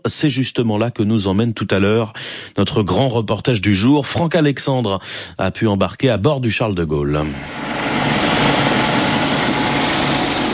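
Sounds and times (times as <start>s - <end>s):
speech: 0.1s - 7.9s
Caïman military helicopter landing on frigate deck: 7.4s - 10.5s.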